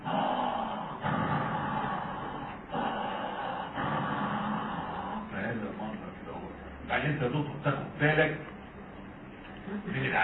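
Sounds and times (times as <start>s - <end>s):
person imitating obstructive airway disease breathing with prolonged expiration: 0.0s - 5.4s
speech: 6.9s - 8.5s, 9.7s - 10.2s.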